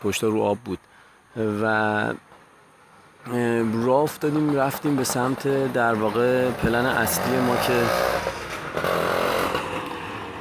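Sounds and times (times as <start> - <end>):
speech: 0.0 - 2.3, 3.2 - 8.9
motorbike passing in the alley: 4.3 - 10.3.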